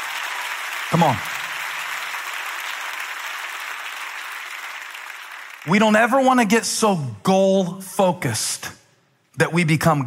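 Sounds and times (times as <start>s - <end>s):
audience clapping hands: 0.0s - 6.6s
speech: 0.9s - 1.3s, 5.6s - 8.8s, 9.4s - 10.0s.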